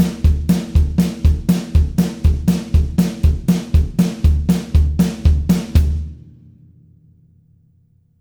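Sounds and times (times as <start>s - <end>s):
polka drum tracks: 0.0s - 6.1s.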